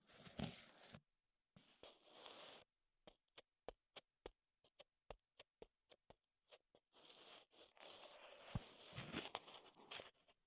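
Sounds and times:
rough scratching on wood: 0:01.6 - 0:10.4.

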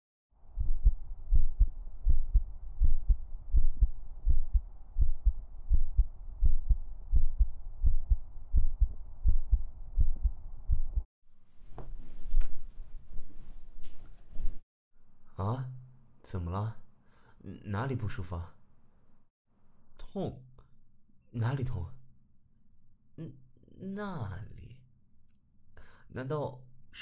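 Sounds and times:
fast heartbeat: 0:00.6 - 0:11.1
rustling and scraping noises: 0:11.5 - 0:14.6
speech: 0:16.3 - 0:16.8, 0:17.4 - 0:18.6, 0:20.2 - 0:20.5, 0:21.3 - 0:22.0, 0:23.2 - 0:24.5, 0:26.1 - 0:27.0.

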